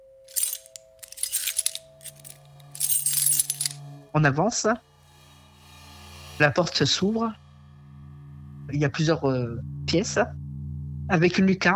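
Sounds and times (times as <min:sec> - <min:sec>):
steady low hum: 0:00.0 - 0:11.7
keys jangling: 0:00.3 - 0:03.8
speech: 0:04.2 - 0:04.9, 0:06.4 - 0:07.4, 0:08.8 - 0:10.4, 0:11.1 - 0:11.7.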